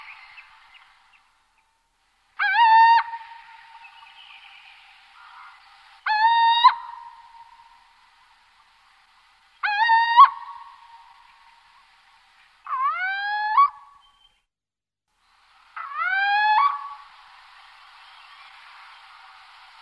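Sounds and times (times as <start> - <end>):
little owl territorial call: 2.4 - 8.3, 9.6 - 11.9, 12.6 - 14.3, 15.8 - 17.2.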